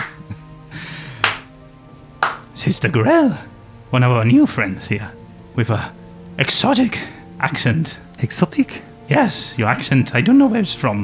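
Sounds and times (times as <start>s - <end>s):
slow hand clapping: 0.0s - 0.4s, 1.2s - 1.6s, 2.2s - 2.6s
speech: 2.6s - 11.0s.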